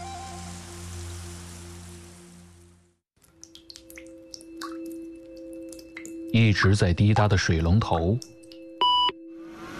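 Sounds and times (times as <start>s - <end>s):
speech: 6.3s - 8.4s
computer beep: 8.8s - 9.2s.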